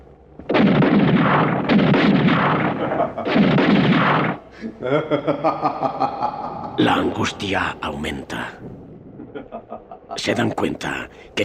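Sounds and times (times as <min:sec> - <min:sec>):
heavy gunfire: 0:00.5 - 0:04.5
laughter: 0:02.8 - 0:03.3, 0:04.5 - 0:06.8, 0:09.2 - 0:10.2
speech: 0:04.8 - 0:08.7, 0:10.2 - 0:11.4.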